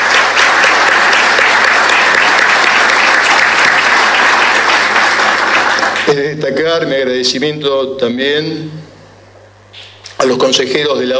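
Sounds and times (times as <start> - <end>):
audience applause: 0.0 - 6.1
speech: 6.4 - 8.8, 10.2 - 11.1.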